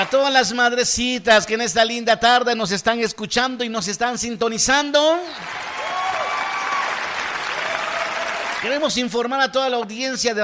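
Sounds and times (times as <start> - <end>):
crowd applause: 0.0 - 0.6, 5.4 - 9.0
speech: 0.0 - 5.7, 8.6 - 10.4
faint whistles or cheers: 5.3 - 7.0.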